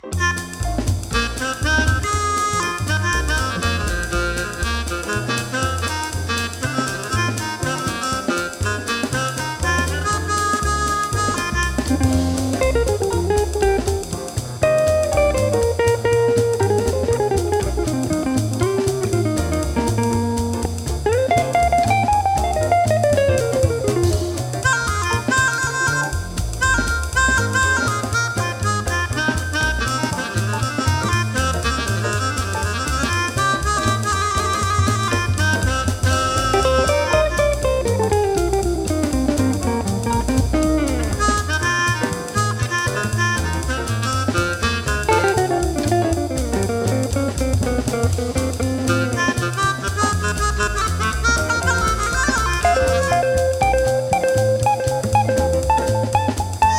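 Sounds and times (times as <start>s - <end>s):
guitar: 0.0s - 56.7s.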